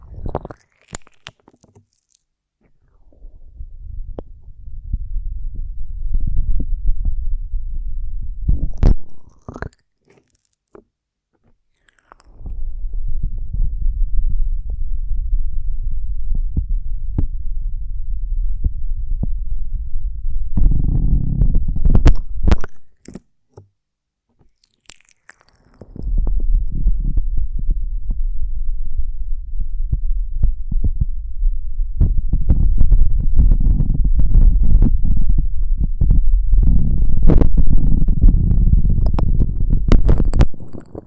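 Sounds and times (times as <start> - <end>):
honeycomb on a branch handled with low rumbling and thudding: 2.7 - 9.3, 12.3 - 22.7, 25.9 - 41.0.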